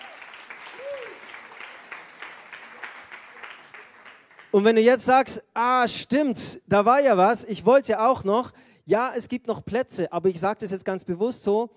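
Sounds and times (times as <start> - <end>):
audience applause: 0.0 - 4.5
speech: 4.5 - 11.7.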